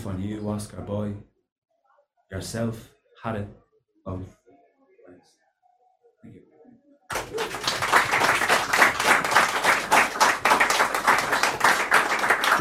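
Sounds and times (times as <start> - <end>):
speech: 0.0 - 1.3, 2.3 - 4.4, 6.2 - 6.5
audience clapping: 7.1 - 12.5.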